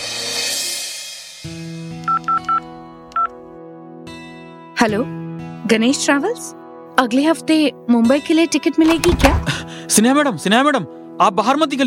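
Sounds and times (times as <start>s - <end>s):
telephone keypad dialing tones: 2.1s - 2.6s
speech: 4.8s - 11.8s.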